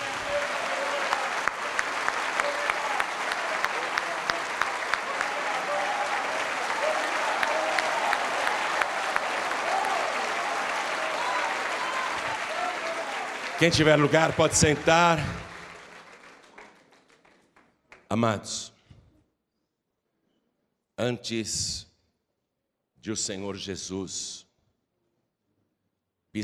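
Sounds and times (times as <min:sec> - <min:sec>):
audience applause: 0:00.0 - 0:17.7
speech: 0:13.6 - 0:15.5, 0:18.1 - 0:18.8, 0:21.0 - 0:21.9, 0:23.0 - 0:24.4.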